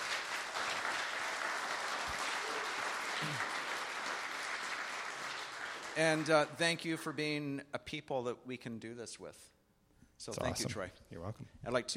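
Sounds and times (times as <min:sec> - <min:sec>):
audience applause: 0:00.0 - 0:06.7
speech: 0:06.0 - 0:09.6, 0:10.2 - 0:11.9.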